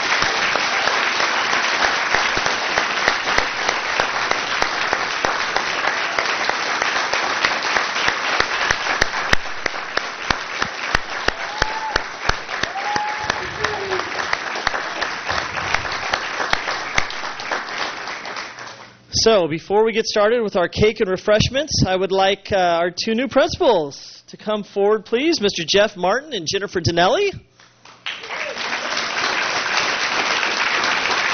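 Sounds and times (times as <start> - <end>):
audience applause for retirees: 0.0 - 19.0, 28.0 - 31.3
cheering whoops: 11.1 - 15.4, 28.2 - 29.1
speech: 19.2 - 27.5.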